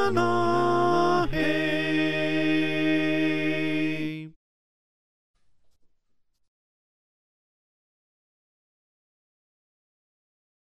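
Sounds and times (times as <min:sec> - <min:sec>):
alto choir singing: 0:00.0 - 0:04.4.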